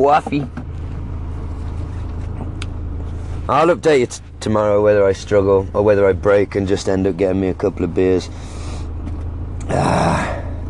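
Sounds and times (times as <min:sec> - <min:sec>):
speech: 0:00.0 - 0:00.6, 0:03.5 - 0:08.6, 0:09.7 - 0:10.3
road noise: 0:00.0 - 0:10.6
van engine rumble while driving: 0:00.0 - 0:10.6.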